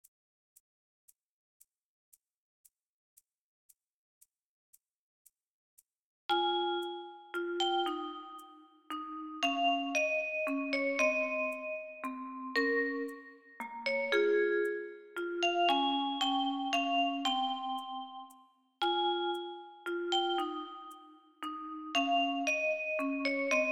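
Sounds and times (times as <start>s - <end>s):
waltz music: 6.3s - 18.2s, 18.9s - 23.7s.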